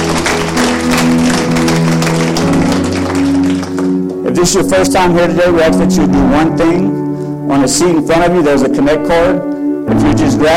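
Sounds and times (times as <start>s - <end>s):
audience applause: 0.0s - 4.2s
speech: 4.4s - 10.5s.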